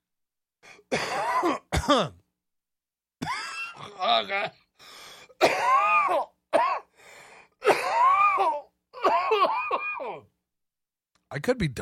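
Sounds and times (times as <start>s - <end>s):
person coughing: 0.9s - 2.2s, 3.2s - 4.0s, 5.4s - 6.9s, 7.6s - 10.3s
speech: 1.9s - 2.2s, 4.0s - 4.6s, 11.3s - 11.7s.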